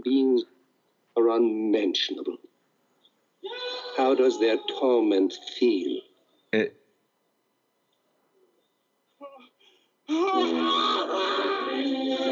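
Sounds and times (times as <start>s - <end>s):
speech: 1.3s - 2.5s, 3.4s - 6.8s, 10.1s - 11.4s
man screaming in a played clip: 3.4s - 5.6s, 10.1s - 11.8s.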